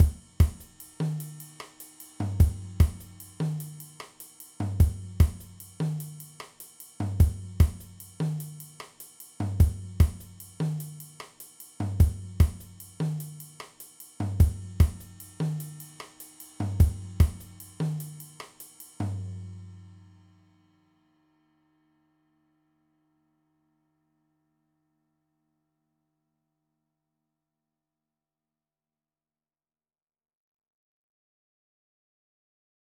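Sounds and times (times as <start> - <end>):
Afro-Cuban music: 0.0 - 19.7.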